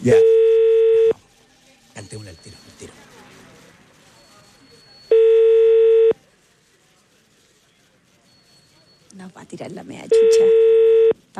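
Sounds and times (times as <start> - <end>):
speech: 0.0 - 0.3, 9.5 - 10.7
telephone dial tone: 5.1 - 6.2, 10.2 - 11.2.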